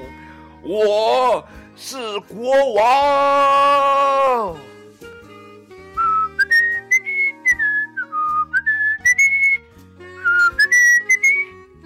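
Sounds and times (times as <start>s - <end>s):
speech: 0.6s - 4.7s
whistling a tune: 5.2s - 11.8s.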